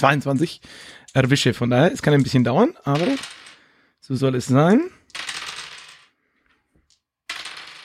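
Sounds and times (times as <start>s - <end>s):
speech: 0.0s - 3.4s, 4.0s - 5.2s
dice being rolled: 2.0s - 3.6s, 4.4s - 7.8s.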